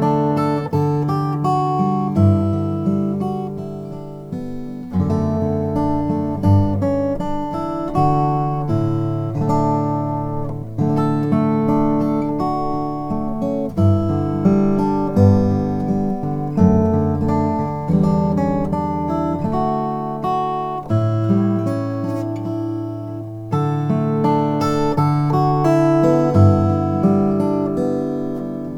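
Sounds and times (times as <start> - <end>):
dreadnought acoustic guitar with pau ferro: 0.0 - 28.7.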